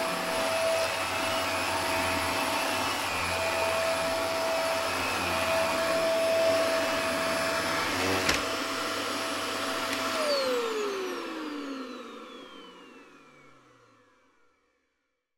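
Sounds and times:
household Dyson upright vacuum cleaner switching on and running: 0.0 - 14.7.

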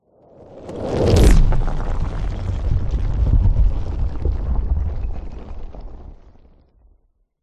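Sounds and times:
sound design whoosh: 0.6 - 4.8
rocks landslide: 0.6 - 7.0.

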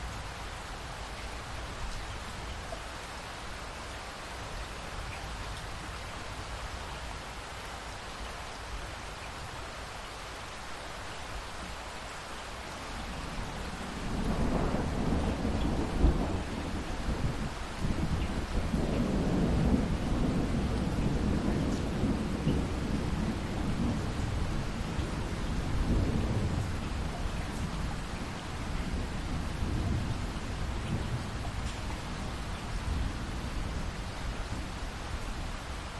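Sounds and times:
light rain dripping after a thunderstorm: 0.0 - 35.9
distant thunder rumbles: 13.2 - 34.8.

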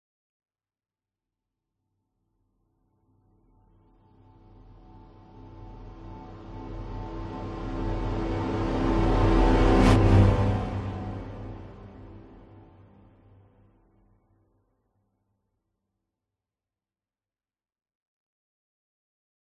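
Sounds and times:
strings: 4.0 - 13.4
cinematic orchestral riser: 5.8 - 13.1
dramatic horns: 6.3 - 13.0.

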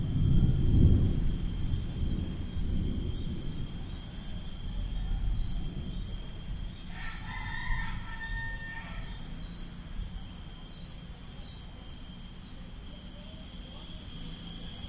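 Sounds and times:
deep rumbling: 0.0 - 6.9
high insect tone: 0.0 - 14.8
rooster crowing: 6.8 - 9.8.

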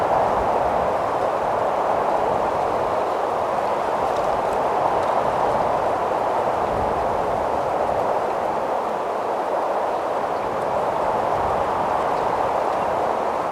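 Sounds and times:
very strong wind in tree in Mojave Desert California USA: 0.0 - 13.4.

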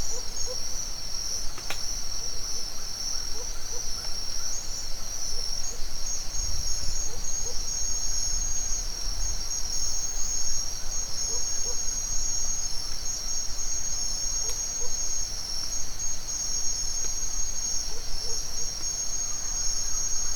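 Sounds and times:
cricket chorus in a forest at dawn in Mexico: 0.0 - 20.3.

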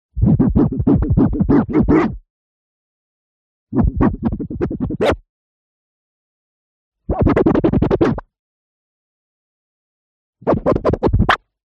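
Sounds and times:
tape recorder reel clean scratch: 0.2 - 2.2, 3.8 - 5.2, 7.1 - 8.2, 10.5 - 11.4.

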